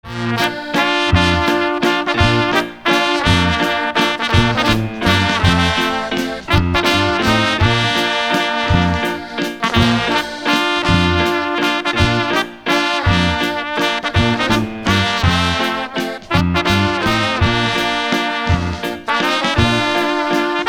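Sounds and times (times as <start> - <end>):
waltz music: 0.0 - 20.6.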